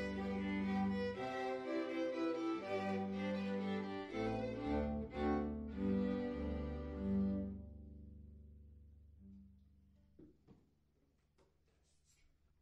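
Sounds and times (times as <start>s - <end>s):
minuet piece: 0.0s - 8.5s.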